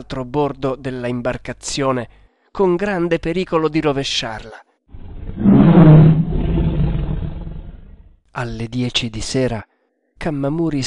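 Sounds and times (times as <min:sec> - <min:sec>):
speech: 0:00.0 - 0:04.7, 0:08.4 - 0:10.8
big cat roaring ferociously: 0:05.0 - 0:08.1.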